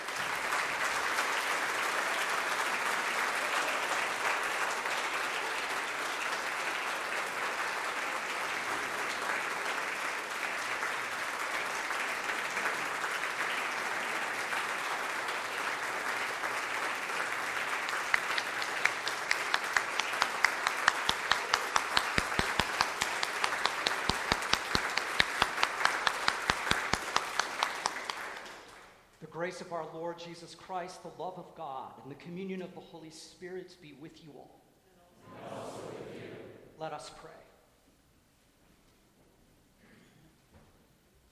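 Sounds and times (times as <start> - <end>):
audience applause: 0.0 - 29.0
speech: 29.5 - 34.6, 36.8 - 37.5.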